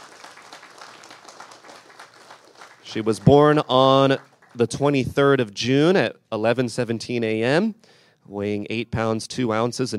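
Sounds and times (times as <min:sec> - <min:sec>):
applause from a gathering congratulating parents: 0:00.0 - 0:04.7
speech: 0:02.9 - 0:09.9.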